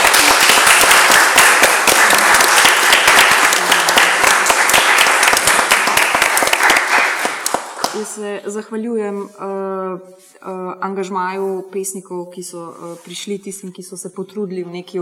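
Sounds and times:
audience applause at a poetry festival discussion: 0:00.0 - 0:08.0
speech: 0:08.1 - 0:15.0.

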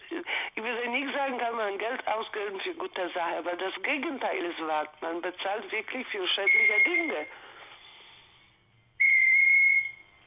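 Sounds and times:
speech: 0:00.6 - 0:07.5
bird whistling: 0:06.5 - 0:07.1, 0:09.0 - 0:10.1.

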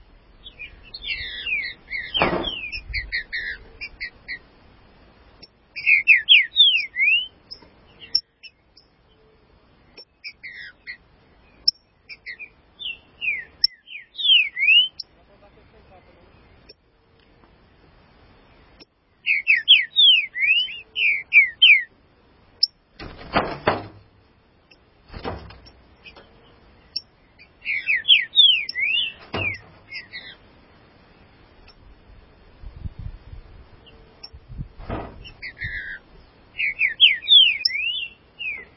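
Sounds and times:
green-winged saltator singing: 0:00.5 - 0:04.4, 0:05.8 - 0:07.4, 0:11.6 - 0:15.0, 0:19.2 - 0:21.9, 0:26.9 - 0:30.4, 0:35.3 - 0:36.0, 0:36.6 - 0:38.7.

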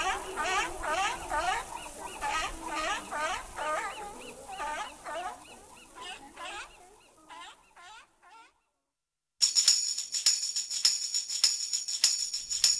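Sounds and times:
seals barking: 0:00.0 - 0:08.6.

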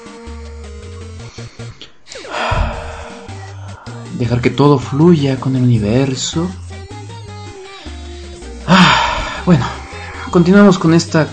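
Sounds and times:
deep breath by a person with stage fright: 0:01.4 - 0:04.1, 0:08.1 - 0:10.3
speech: 0:04.2 - 0:06.6, 0:09.5 - 0:11.3.

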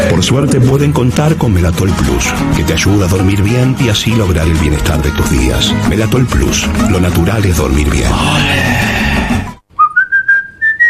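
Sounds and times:
speech: 0:00.2 - 0:09.0
whistled tune: 0:09.7 - 0:10.8.

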